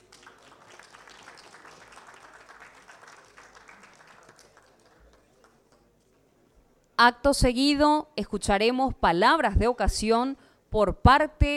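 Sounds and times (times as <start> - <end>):
audience applause: 0.0 - 5.8
speech: 7.0 - 11.5.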